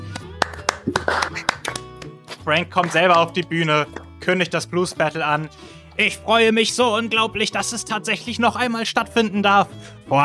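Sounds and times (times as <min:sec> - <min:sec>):
audience clapping: 0:00.0 - 0:03.3
speech: 0:02.4 - 0:10.2.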